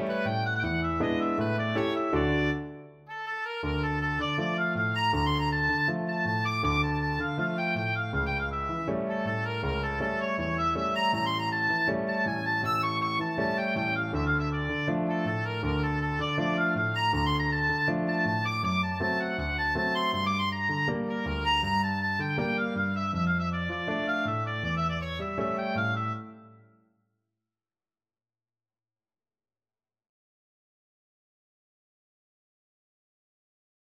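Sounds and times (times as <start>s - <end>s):
tango on oboe: 0.0s - 26.6s.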